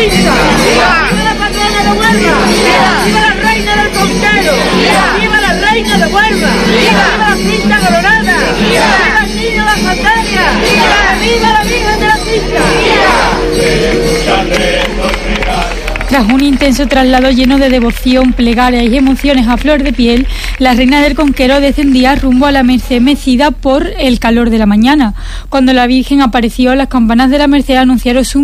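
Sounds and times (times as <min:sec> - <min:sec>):
crowd ovation with cheers and applause: 0:00.0 - 0:09.4, 0:10.1 - 0:22.6
speech: 0:16.1 - 0:28.4.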